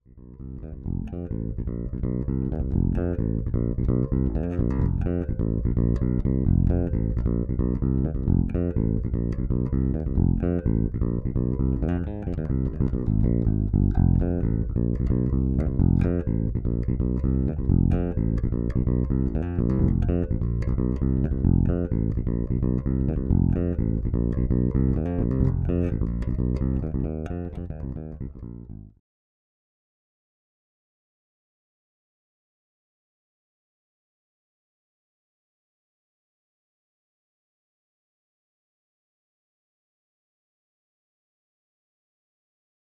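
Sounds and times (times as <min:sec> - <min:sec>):
Fodera Monarch bass guitar through Radial J48 with lowcut: 0:00.0 - 0:29.0.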